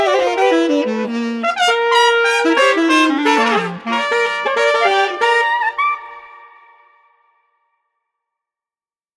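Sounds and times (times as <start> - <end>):
lively traditional brass music without drums: 0.0 - 6.6.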